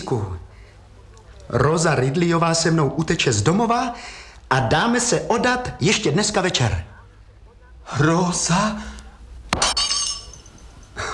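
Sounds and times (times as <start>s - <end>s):
speech: 0.0s - 0.4s, 1.5s - 6.9s, 7.9s - 8.9s
glass breaking into shards: 9.5s - 10.8s.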